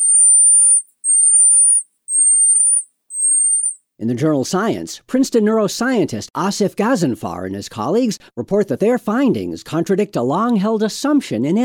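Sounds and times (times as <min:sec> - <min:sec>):
marmoset whistled calls: 0:00.0 - 0:03.8
speech: 0:04.0 - 0:11.6.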